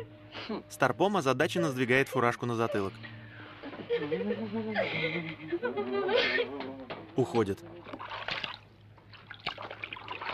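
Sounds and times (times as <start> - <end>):
speech: 0.0 - 3.2, 3.8 - 8.4
laughter: 1.9 - 7.0
water splashing as a monkey washes a towel in a filled bathtub: 7.6 - 10.3.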